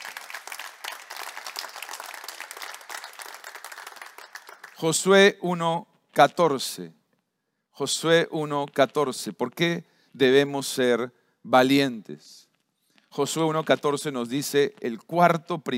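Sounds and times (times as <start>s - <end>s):
audience applause: 0.0s - 4.8s
speech: 4.8s - 7.0s, 7.8s - 12.5s, 13.1s - 15.7s.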